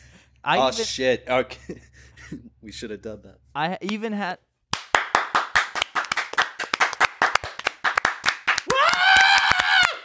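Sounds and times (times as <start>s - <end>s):
speech: 0.4s - 4.5s
small group clapping: 4.7s - 10.0s
loud whoop or cheer: 8.6s - 10.0s.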